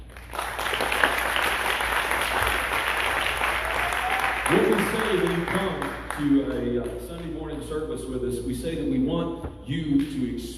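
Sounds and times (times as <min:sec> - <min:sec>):
church congregation clapping to welcome visitors at a Sunday morning service: 0:00.0 - 0:07.4
speech: 0:05.7 - 0:10.5.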